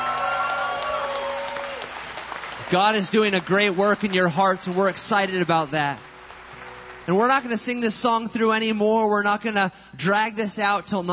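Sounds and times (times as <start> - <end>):
audience applause: 0.0 - 8.0
speech: 2.7 - 6.1, 7.1 - 11.1.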